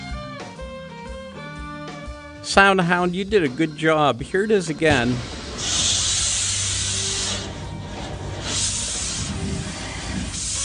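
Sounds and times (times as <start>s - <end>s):
speech: 2.4s - 5.4s
low mechanical drone of an automated car wash: 4.4s - 10.6s
water spraying in an automated car wash: 4.9s - 10.6s.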